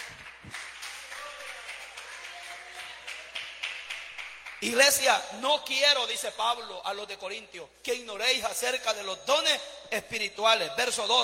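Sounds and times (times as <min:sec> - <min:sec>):
audience applause: 0:00.0 - 0:04.6
speech: 0:04.6 - 0:11.2.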